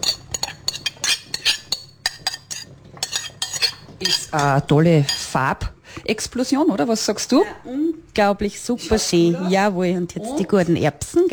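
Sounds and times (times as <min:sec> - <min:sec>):
utensils clinking against a bowl while adding cooked carrots to pickle marinade: 0:00.0 - 0:05.5
speech: 0:04.0 - 0:11.3.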